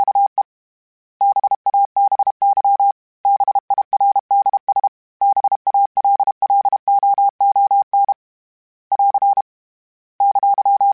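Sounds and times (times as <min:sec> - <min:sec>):
Morse code CW code groups: 0:01.2 - 0:08.2, 0:08.9 - 0:09.4, 0:10.2 - 0:10.9.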